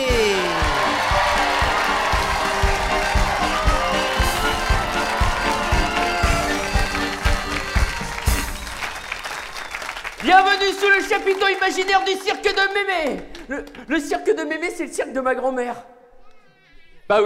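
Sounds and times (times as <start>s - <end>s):
music: 0.0s - 9.4s
crowd whooping: 0.0s - 10.2s
crowd clapping: 0.0s - 14.0s
speech: 10.3s - 16.0s, 17.1s - 17.2s.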